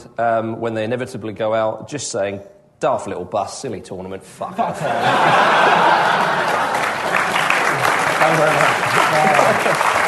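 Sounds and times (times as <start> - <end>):
speech: 0.0 - 7.3, 8.2 - 10.0
laughter: 4.5 - 10.0
clapping: 6.4 - 10.0.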